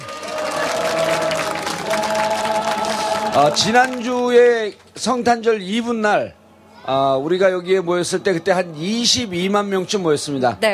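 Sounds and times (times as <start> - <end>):
crowd applause: 0.0 - 4.8
speech: 3.4 - 10.7.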